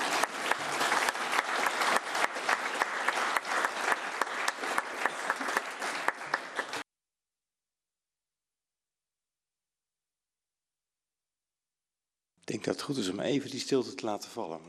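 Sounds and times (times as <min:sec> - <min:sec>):
audience applause: 0:00.0 - 0:06.8
speech: 0:12.5 - 0:14.6.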